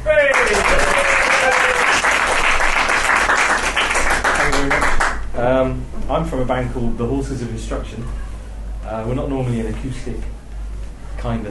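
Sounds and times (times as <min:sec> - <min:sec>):
audience applause: 0:00.0 - 0:05.2
speech: 0:05.6 - 0:10.4, 0:11.2 - 0:11.4.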